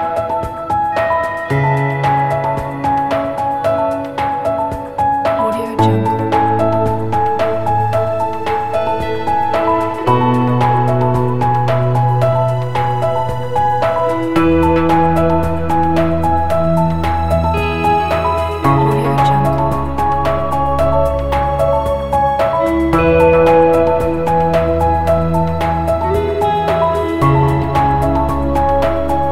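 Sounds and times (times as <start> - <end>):
sweet ambient corporate music: 0.0 - 29.3.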